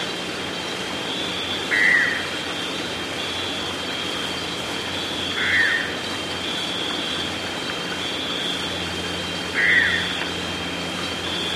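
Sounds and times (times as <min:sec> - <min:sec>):
blackish nightjar upslurred croaking calls in Ecuador: 0:01.0 - 0:11.5.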